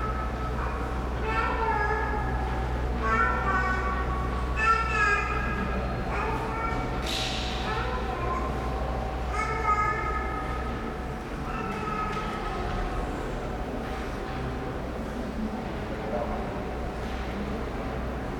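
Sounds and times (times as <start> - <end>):
vending machines providing a constant hum: 0.0 - 18.3.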